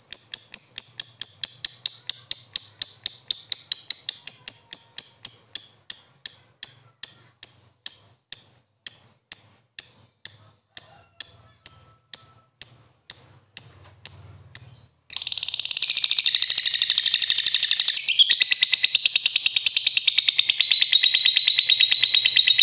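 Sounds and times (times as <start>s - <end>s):
bird song in short bright chirping bursts: 0.0s - 22.6s.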